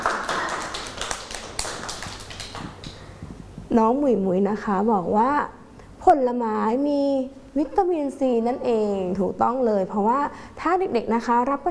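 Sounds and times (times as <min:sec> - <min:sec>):
clapping hands: 0:00.0 - 0:03.0
speech: 0:03.7 - 0:11.6.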